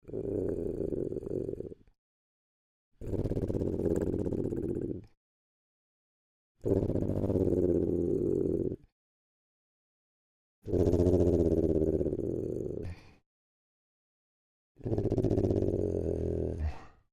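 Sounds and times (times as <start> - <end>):
low bird-like creature growl: 0.0 - 1.9, 3.0 - 5.2, 6.6 - 8.9, 10.7 - 13.2, 14.8 - 17.1.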